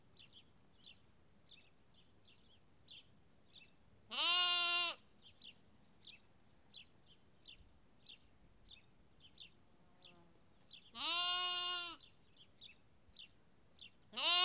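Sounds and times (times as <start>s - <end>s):
sheep lamb bleating in Kakopetria Cyprus: 4.1s - 5.0s, 10.9s - 12.0s, 14.1s - 14.4s.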